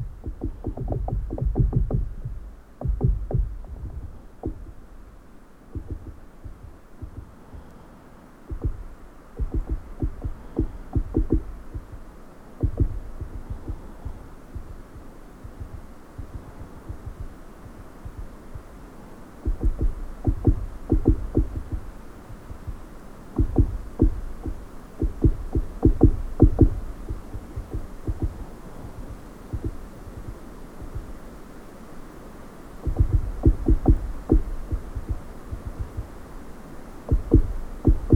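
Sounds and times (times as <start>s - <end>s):
woodpecker drumming on hollow dead tree: 0.0s - 5.0s, 5.7s - 7.7s, 8.5s - 18.7s, 19.4s - 30.3s, 32.8s - 36.2s, 37.1s - 38.1s
low steady hum: 0.0s - 38.1s.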